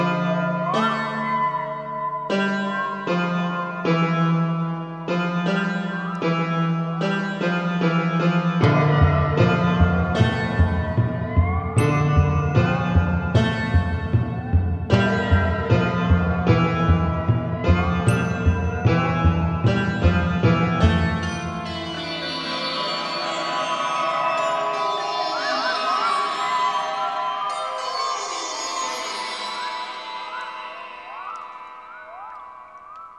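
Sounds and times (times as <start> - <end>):
Indian sitar: 0.0 - 32.2
Tibetan bells: 0.0 - 33.1
timpani: 8.6 - 21.3.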